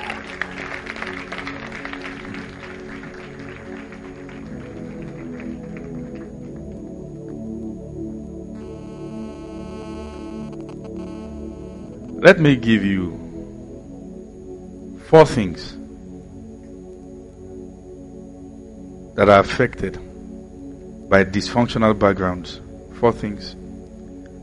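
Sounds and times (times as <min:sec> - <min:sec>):
audience applause: 0:00.0 - 0:06.8
low hum: 0:07.9 - 0:21.1
speech: 0:12.2 - 0:13.2, 0:15.1 - 0:15.8, 0:19.2 - 0:20.0, 0:21.1 - 0:23.6.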